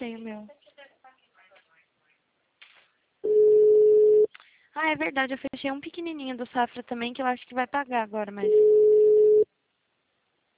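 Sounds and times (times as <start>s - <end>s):
speech: 0.0s - 0.7s, 4.8s - 8.9s
telephone tone before voicemail: 3.2s - 4.3s, 8.4s - 9.5s.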